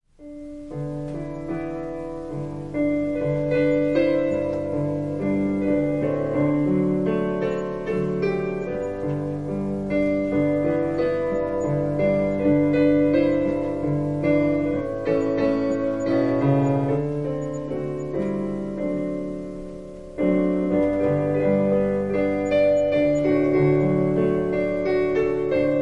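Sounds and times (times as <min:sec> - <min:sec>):
piano prelude: 0:00.1 - 0:25.8.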